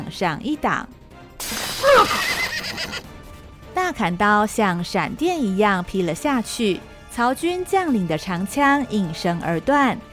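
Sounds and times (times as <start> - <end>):
speech: 0.1 - 1.0, 1.8 - 3.1, 3.8 - 10.1
war horse neighing: 1.6 - 3.1.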